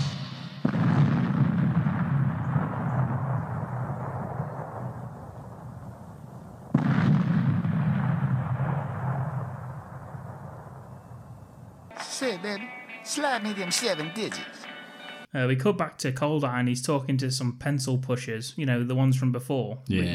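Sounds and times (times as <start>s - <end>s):
primer cord explosion: 0.0s - 5.9s, 6.6s - 10.9s
speech: 12.3s - 14.7s, 15.3s - 20.1s.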